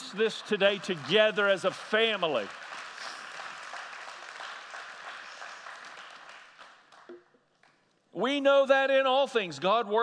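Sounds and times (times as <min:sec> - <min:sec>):
audience applause: 0:00.0 - 0:07.1
speech: 0:00.1 - 0:02.6, 0:08.2 - 0:10.0.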